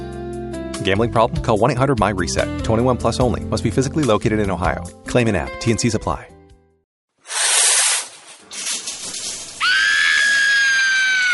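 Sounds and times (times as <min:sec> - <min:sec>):
speech: 0:00.8 - 0:06.3
shower water running: 0:07.3 - 0:10.7.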